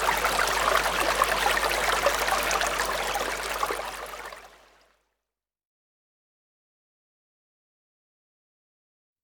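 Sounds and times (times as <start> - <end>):
river flowing: 0.0 - 4.7.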